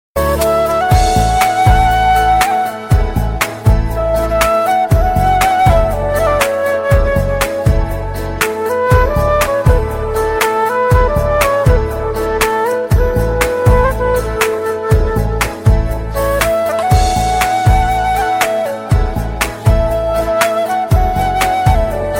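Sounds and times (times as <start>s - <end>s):
romantic music: 0.2s - 22.1s.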